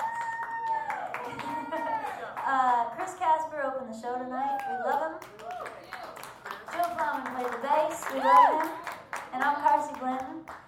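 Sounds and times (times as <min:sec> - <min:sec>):
people cheering: 0:00.0 - 0:02.8, 0:04.5 - 0:09.2
audience applause at a live show: 0:00.0 - 0:02.9, 0:05.2 - 0:10.6
speech: 0:07.5 - 0:08.8, 0:09.4 - 0:10.6.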